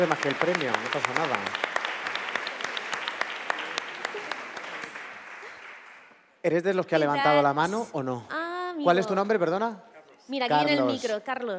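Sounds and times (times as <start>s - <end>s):
speech: 0.0s - 1.7s, 6.4s - 11.5s
audience applause: 0.0s - 6.3s.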